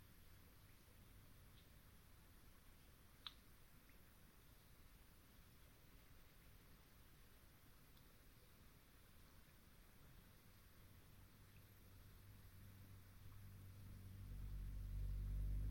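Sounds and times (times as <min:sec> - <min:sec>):
faint brief chirps: 0:00.0 - 0:15.6
faint hiss: 0:00.0 - 0:15.6
sharp tick: 0:03.2 - 0:04.0
deep hum: 0:12.2 - 0:15.6
soft low rumble: 0:12.2 - 0:15.6.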